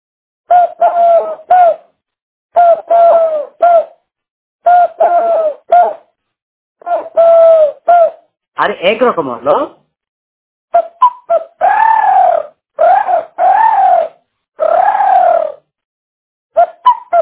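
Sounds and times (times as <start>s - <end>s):
human voice imitating a dove's call: 0.5s - 1.9s, 2.6s - 4.0s, 4.6s - 6.0s, 6.8s - 8.2s, 10.8s - 15.7s, 16.6s - 17.2s
speech: 8.6s - 9.8s.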